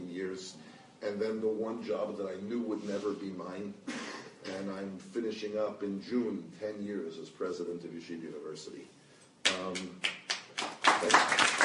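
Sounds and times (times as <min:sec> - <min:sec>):
speech: 0:00.4 - 0:11.6
audience applause: 0:10.6 - 0:11.6.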